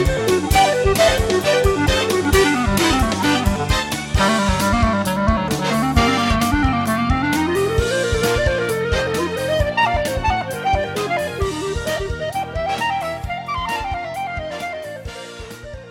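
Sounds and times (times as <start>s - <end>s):
funky music with clarinet: 0.0s - 15.8s.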